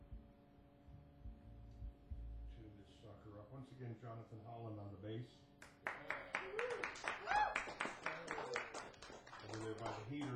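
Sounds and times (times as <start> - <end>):
speech: 3.1 - 8.4, 9.4 - 10.3
audience clapping, some wearing gloves: 5.6 - 10.3.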